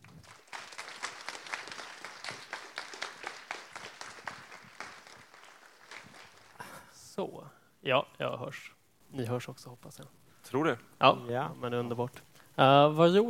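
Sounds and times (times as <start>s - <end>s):
audience applause: 0.0s - 7.0s
speech: 7.2s - 13.2s.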